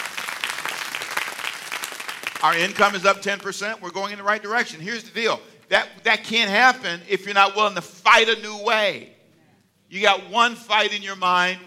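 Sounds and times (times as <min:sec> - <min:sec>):
audience applauding and clapping hands: 0:00.0 - 0:03.8
speech: 0:02.4 - 0:09.2, 0:09.9 - 0:11.6.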